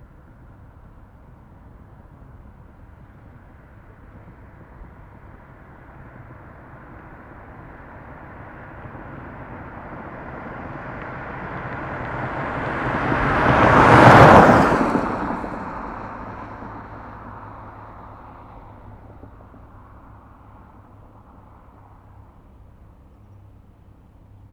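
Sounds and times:
car passing fast in a desert: 5.5 - 21.6.

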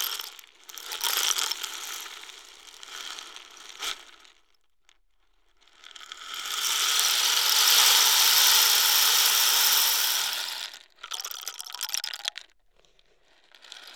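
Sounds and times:
African rain stick: 0.0 - 2.2, 6.3 - 12.4.

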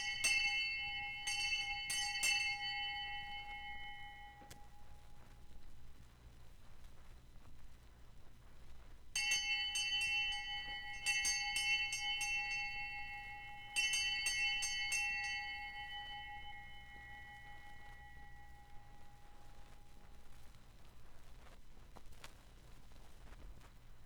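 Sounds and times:
hand bell ringing: 0.0 - 5.3, 9.2 - 20.2.

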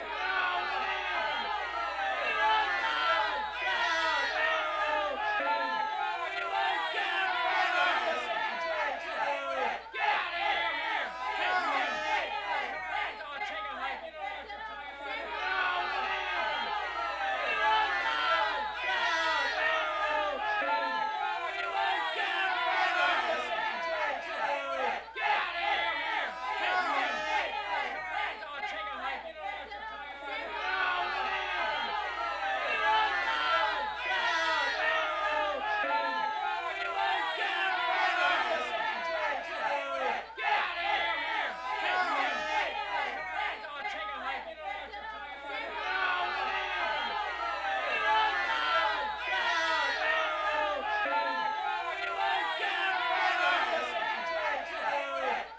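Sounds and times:
crowd of angry men shouting a chant: 0.0 - 55.5.

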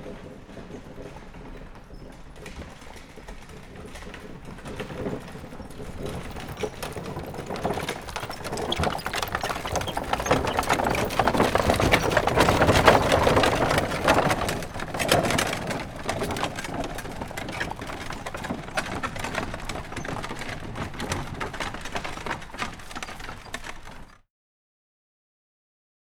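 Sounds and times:
wagons passing slowly: 0.0 - 24.2.

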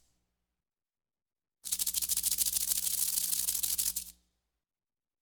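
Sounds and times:
cabasa accent rhythm: 1.7 - 4.1.

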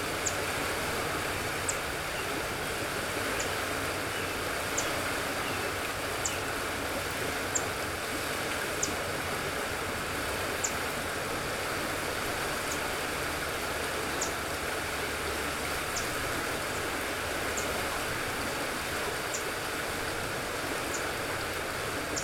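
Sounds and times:
water ambience on Cana Island: 0.0 - 22.2.

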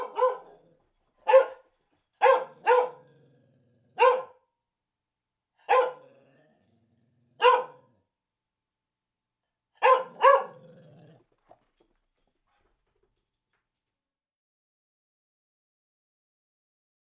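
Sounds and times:
mixed breed medium dog barking: 0.0 - 3.1, 4.0 - 4.5, 5.6 - 6.1, 7.4 - 7.9, 9.8 - 10.7.

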